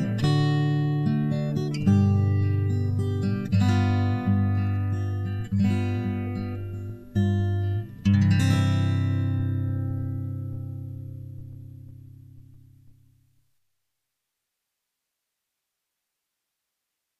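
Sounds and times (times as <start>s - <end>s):
guitar ode: 0.0s - 13.4s.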